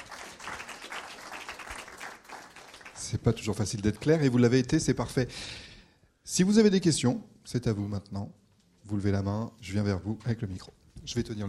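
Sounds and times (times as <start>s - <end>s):
audience applause for four speakers after a French-language presentation: 0.0s - 3.3s
speech: 3.1s - 5.7s, 6.3s - 11.4s.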